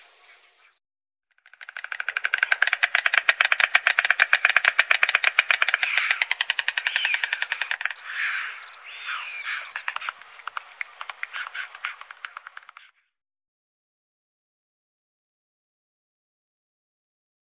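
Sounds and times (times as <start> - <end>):
white stork bill clattering: 1.4 - 13.0.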